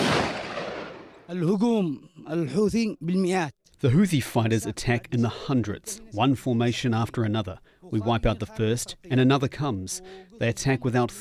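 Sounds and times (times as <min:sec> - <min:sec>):
artillery and mortar fire near Taiz in southwestern Yemen: 0:00.0 - 0:01.3
speech: 0:01.3 - 0:11.1.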